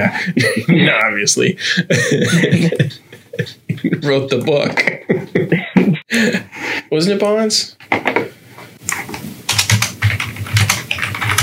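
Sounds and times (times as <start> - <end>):
speech: 0.0 - 5.6, 6.2 - 7.8
laughter: 1.7 - 6.5
typing on computer keyboard: 9.5 - 11.4.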